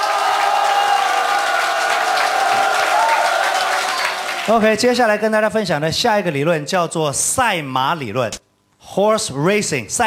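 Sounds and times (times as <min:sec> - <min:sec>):
audience applause: 0:00.0 - 0:04.7
speech: 0:04.5 - 0:10.0.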